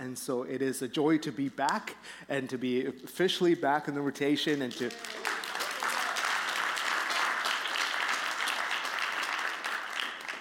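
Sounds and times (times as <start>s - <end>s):
speech: 0.0s - 5.4s
audience applause: 4.8s - 10.4s.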